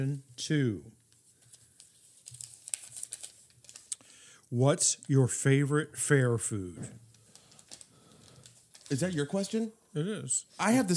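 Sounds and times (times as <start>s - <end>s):
speech: 0.0s - 0.9s, 4.5s - 7.0s, 8.9s - 10.9s
paper slip drawn from a hat crinkling: 1.1s - 4.0s, 7.1s - 9.7s.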